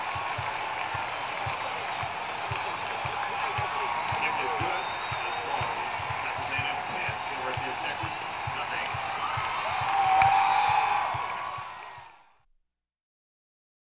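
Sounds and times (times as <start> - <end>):
football stadium crowd atmosphere: 0.0 - 12.5.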